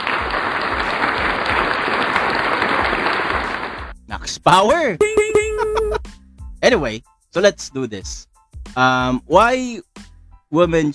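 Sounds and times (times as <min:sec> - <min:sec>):
audience applause: 0:00.0 - 0:03.9
speech: 0:04.4 - 0:05.4, 0:06.7 - 0:10.9.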